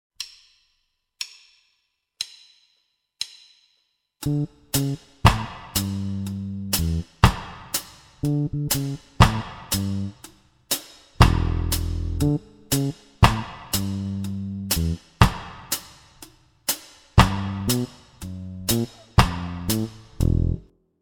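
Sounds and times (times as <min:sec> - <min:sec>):
one drop reggae drum beat: 0:04.2 - 0:20.6.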